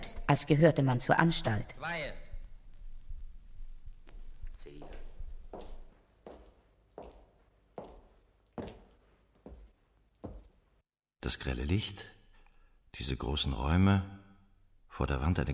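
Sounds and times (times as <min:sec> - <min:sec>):
speech: 0:00.0 - 0:02.2, 0:11.3 - 0:12.2, 0:13.0 - 0:14.2, 0:15.0 - 0:15.5
footsteps on a wooden floor in a two-storey building: 0:03.9 - 0:10.8.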